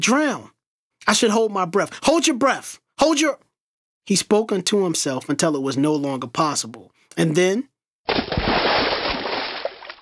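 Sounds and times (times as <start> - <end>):
speech: 0.0 - 3.4, 4.0 - 8.3
body splashing into water: 8.1 - 10.0.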